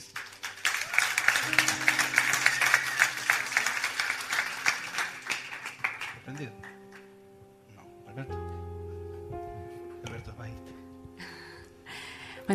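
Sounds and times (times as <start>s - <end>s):
church audience applause: 0.0s - 7.1s
speech: 6.3s - 6.7s, 8.2s - 8.7s.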